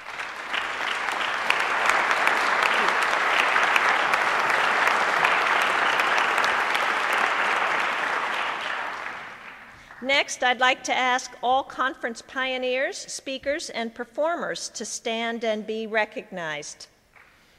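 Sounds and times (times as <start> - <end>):
audience applause: 0.0 - 10.0
speech: 10.1 - 16.9.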